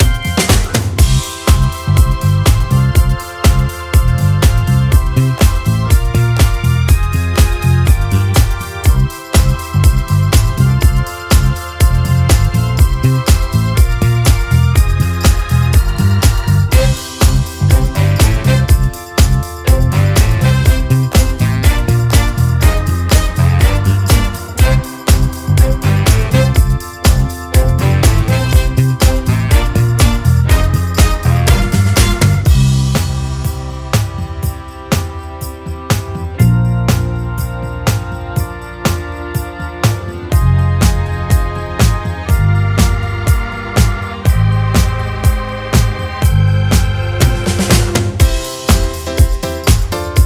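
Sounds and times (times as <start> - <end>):
instrumental music: 0.0 - 50.2.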